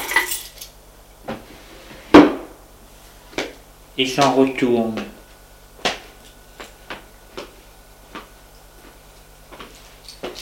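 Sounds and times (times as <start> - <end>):
keys dropped into a drawer: 0.0 - 0.7
speech: 4.0 - 5.2.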